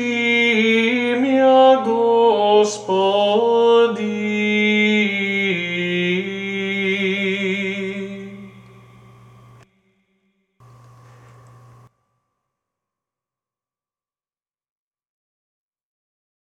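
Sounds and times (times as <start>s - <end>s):
Serbian chant: 0.0s - 9.8s.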